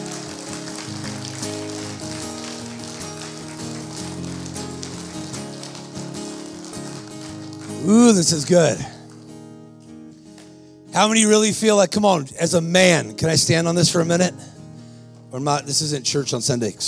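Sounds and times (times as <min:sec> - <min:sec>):
audience clapping: 0:00.0 - 0:11.2
speech: 0:07.8 - 0:09.0, 0:11.0 - 0:14.5, 0:15.3 - 0:16.8.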